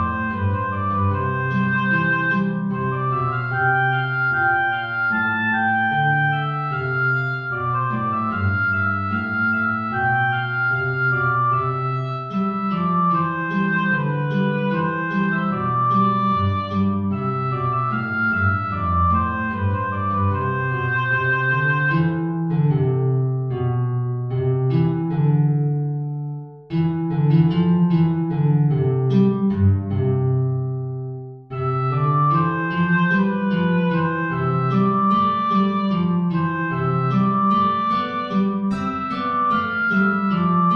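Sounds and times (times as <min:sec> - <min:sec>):
oboe playing an aria: 0:00.0 - 0:23.0, 0:31.5 - 0:40.7
guitar accompanying an aria: 0:00.0 - 0:40.7.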